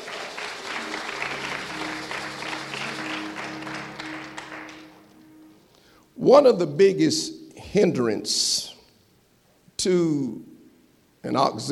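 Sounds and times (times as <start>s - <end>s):
audience applause: 0.0s - 5.4s
speech: 6.2s - 8.7s, 9.8s - 10.5s, 11.2s - 11.7s.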